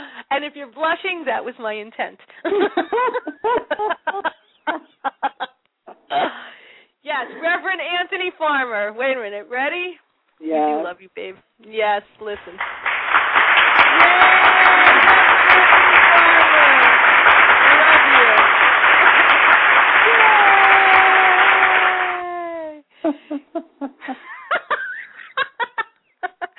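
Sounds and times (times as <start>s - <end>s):
speech: 0.4s - 4.9s, 7.2s - 12.9s, 23.0s - 24.3s
laughter: 2.5s - 6.4s, 13.7s - 26.5s
applause button sound effect: 12.3s - 22.6s.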